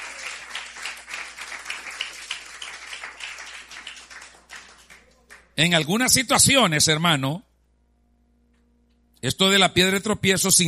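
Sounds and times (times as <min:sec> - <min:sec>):
loud applause from audience: 0:00.0 - 0:05.6
speech: 0:05.6 - 0:07.5, 0:09.2 - 0:10.6.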